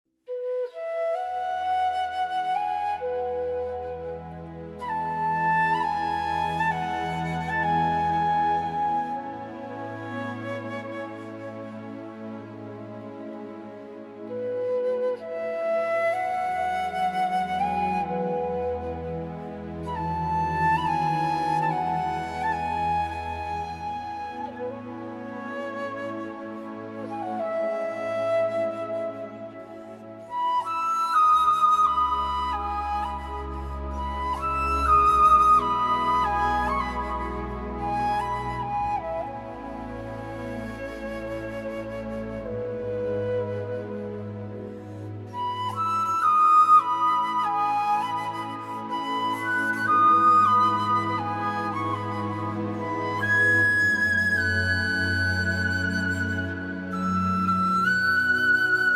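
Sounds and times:
flute: 0.2s - 58.9s.

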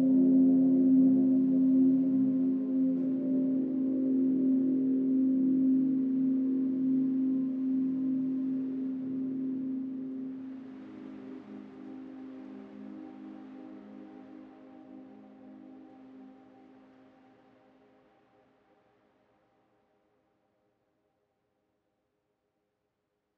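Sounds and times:
medium river flowing in a forest: 0.2s - 17.8s.

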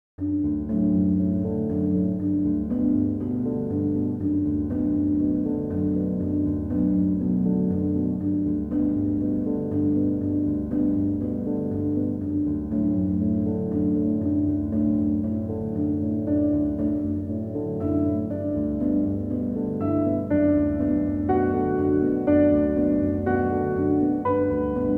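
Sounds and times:
ambient piano: 0.2s - 24.9s.

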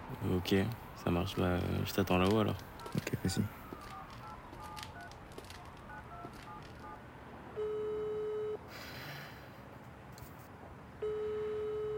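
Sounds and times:
speech: 0.1s - 3.6s
ringback tones of an outgoing phone call: 2.8s - 7.0s, 7.6s - 8.6s, 11.0s - 11.9s.

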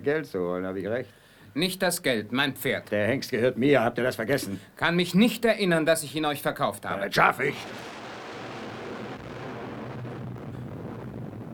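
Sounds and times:
speech: 0.0s - 7.9s
gas explosion at an oil well: 7.6s - 11.5s.

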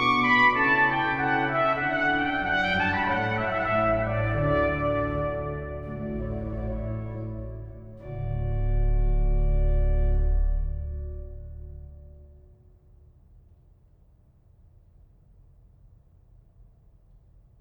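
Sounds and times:
trumpet concerto adagio: 0.0s - 12.2s.

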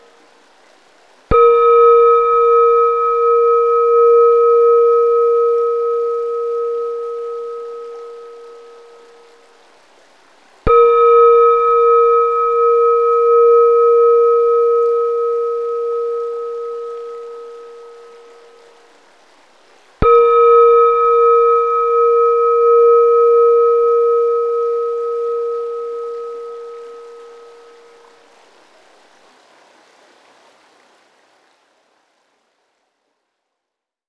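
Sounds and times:
Tibetan singing bowls: 1.3s - 9.6s, 10.7s - 19.0s, 20.0s - 28.5s.

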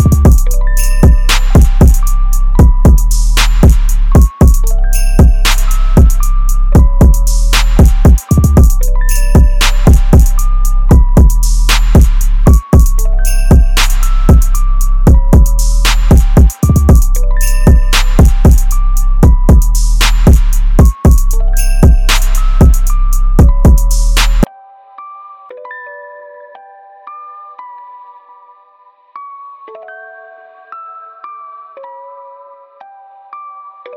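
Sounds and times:
beats: 0.0s - 24.5s.

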